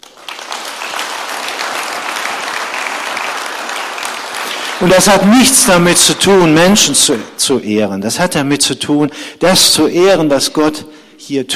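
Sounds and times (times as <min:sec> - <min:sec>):
audience applause: 0:00.0 - 0:07.4
speech: 0:04.8 - 0:11.5.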